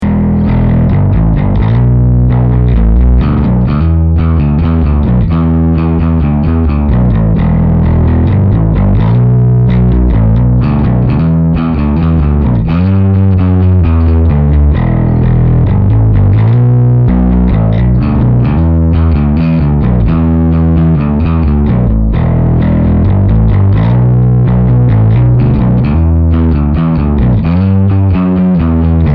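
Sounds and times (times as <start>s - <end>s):
plectrum-plucked guitar at full gain: 0.0s - 29.1s.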